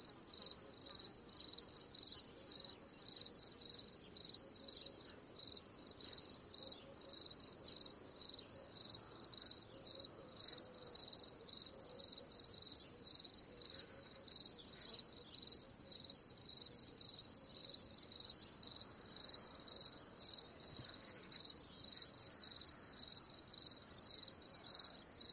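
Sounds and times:
cricket chirping: 0.0 - 25.3.

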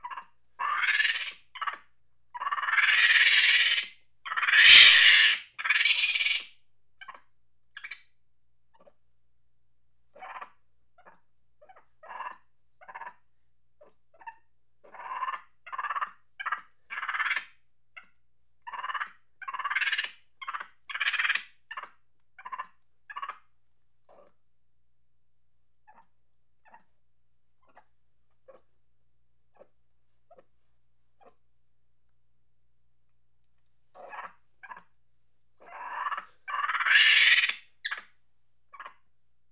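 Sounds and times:
monkey chattering angrily: 0.0 - 1.8, 2.4 - 6.5, 14.9 - 17.5, 18.7 - 23.4, 35.6 - 38.1.

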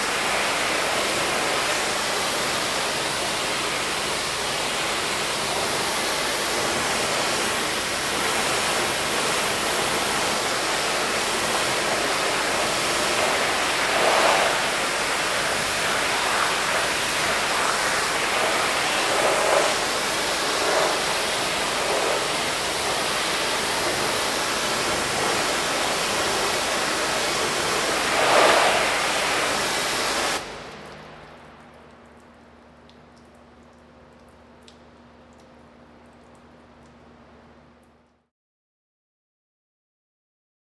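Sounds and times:
pressure washer spraying: 0.0 - 30.7.

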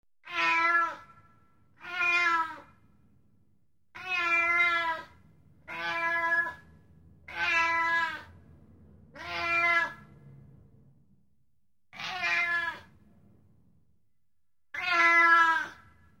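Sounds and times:
cat meowing: 0.2 - 1.1, 1.8 - 2.7, 4.0 - 6.6, 7.3 - 8.3, 9.2 - 10.1, 12.0 - 12.9, 14.7 - 15.9.

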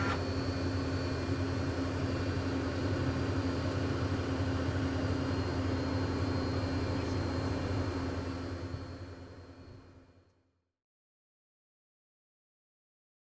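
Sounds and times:
aircraft cabin ambience: 0.0 - 10.0.

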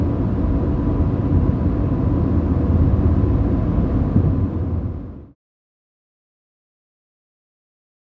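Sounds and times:
calm car ride: 0.0 - 5.4.

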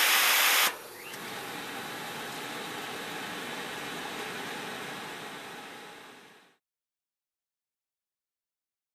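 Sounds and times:
hydraulic machine: 0.0 - 6.3.

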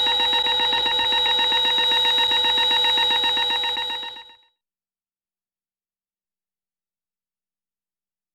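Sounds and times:
horrific UFO beep: 0.0 - 4.2.

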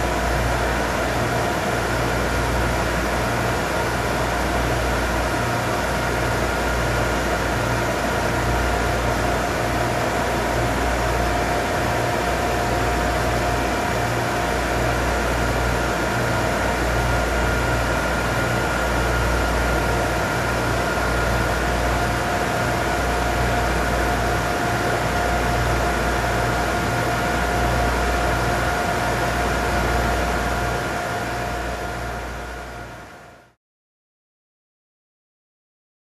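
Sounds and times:
loud generator noise: 0.0 - 33.2.

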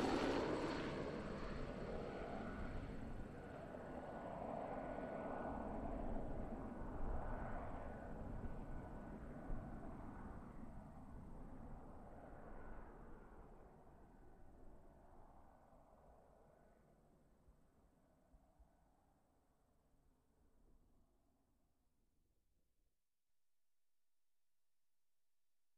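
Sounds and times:
helicopter flying fast overhead: 0.0 - 17.2.

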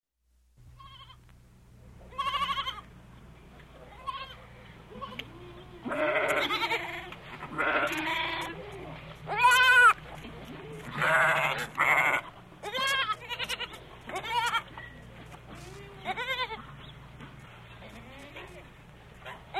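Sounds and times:
sheep bleating: 2.1 - 2.9, 3.9 - 10.0, 10.7 - 14.7, 15.5 - 16.7.

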